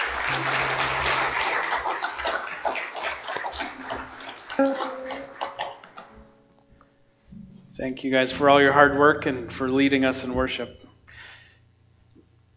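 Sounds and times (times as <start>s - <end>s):
round of applause: 0.0s - 6.0s
speech: 0.3s - 0.7s, 4.6s - 4.9s, 7.8s - 10.9s.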